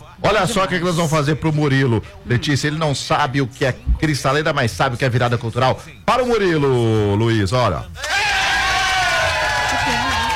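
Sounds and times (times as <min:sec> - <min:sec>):
speech: 0:00.3 - 0:08.2
people shouting: 0:08.0 - 0:10.3
television studio audience cheering and clapping for a guest: 0:08.0 - 0:10.3.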